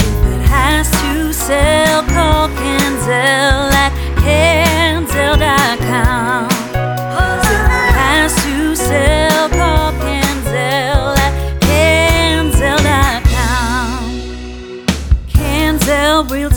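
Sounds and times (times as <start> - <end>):
jingle: 0.1 - 16.5.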